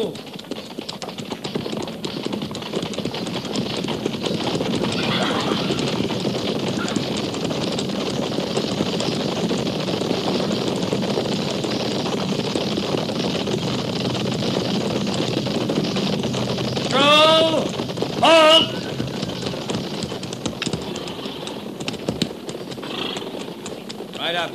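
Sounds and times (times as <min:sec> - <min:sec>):
horses galloping: 0:00.0 - 0:24.5.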